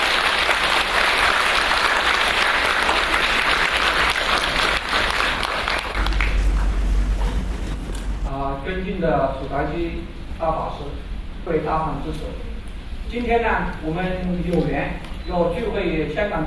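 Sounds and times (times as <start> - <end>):
warm applause from a large audience: 0.0 - 8.0
speech: 9.0 - 12.5, 13.1 - 16.4.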